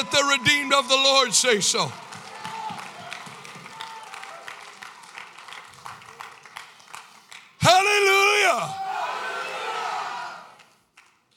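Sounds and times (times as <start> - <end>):
speech: 0.0 - 2.2, 7.7 - 8.8
audience clapping in praise: 0.0 - 8.8, 10.3 - 11.3
whoops and shouted cheers: 2.1 - 5.0, 7.6 - 10.6.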